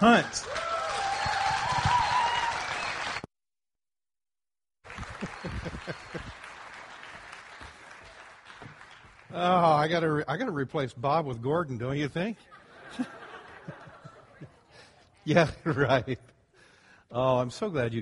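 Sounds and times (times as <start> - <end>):
speech: 0.0 - 0.6, 9.4 - 13.2, 15.2 - 16.3, 17.1 - 18.0
audience round of applause: 0.0 - 3.3, 4.8 - 9.9
laughter: 5.0 - 6.5, 12.4 - 16.2.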